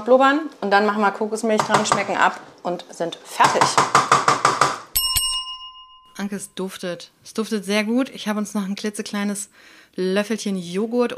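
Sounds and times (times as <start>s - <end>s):
speech: 0.0s - 4.1s, 6.2s - 11.1s
bright clear bell dings: 5.0s - 6.3s
kitchen timer ringing: 5.0s - 6.3s.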